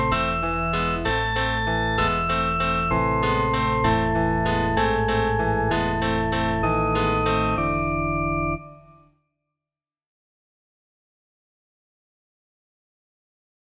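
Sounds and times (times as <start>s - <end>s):
organ: 0.0s - 8.9s
piano: 0.0s - 9.0s.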